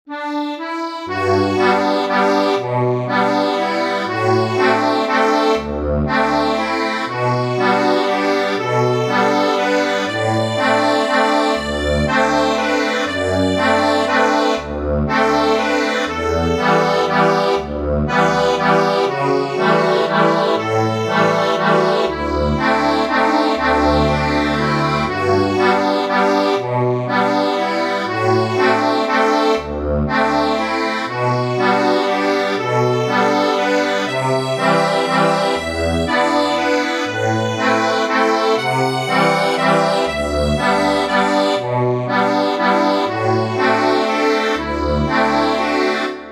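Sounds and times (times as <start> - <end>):
accordion: 0.1 - 46.3.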